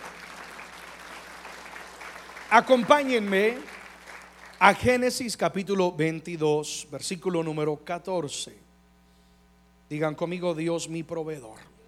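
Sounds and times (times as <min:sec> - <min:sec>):
audience applauding loudly: 0:00.0 - 0:05.0
speech: 0:02.5 - 0:03.8, 0:04.6 - 0:08.6, 0:09.9 - 0:11.7.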